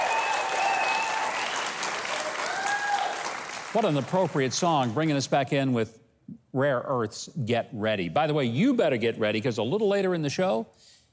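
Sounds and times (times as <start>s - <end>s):
audience applause for a band: 0.0s - 4.5s
speech: 3.7s - 11.0s.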